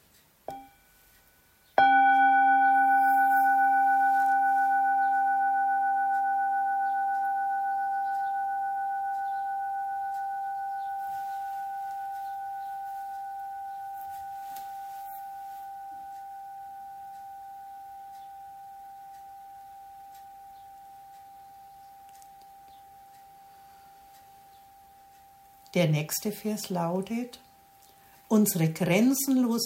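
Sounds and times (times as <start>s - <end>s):
mindfulness bell ringing: 1.8s - 24.0s
speech: 25.7s - 27.4s, 28.3s - 29.6s.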